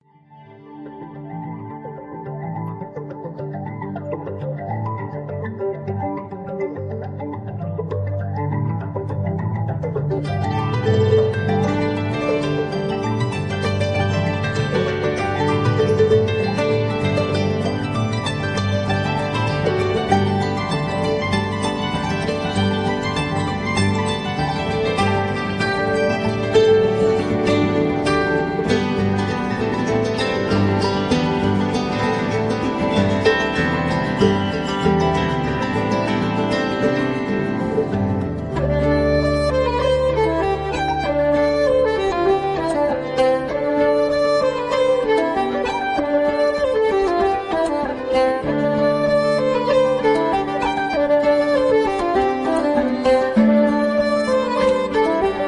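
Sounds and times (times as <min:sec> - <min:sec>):
folk music: 0:00.4 - 0:55.4.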